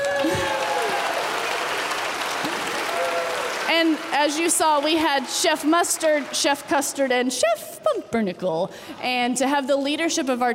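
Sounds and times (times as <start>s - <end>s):
audience clapping: 0.0s - 7.3s
speech: 3.8s - 10.5s.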